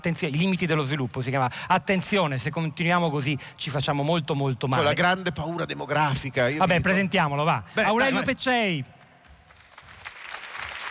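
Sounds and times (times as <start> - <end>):
speech: 0.0 - 9.0
audience applause: 9.4 - 10.8.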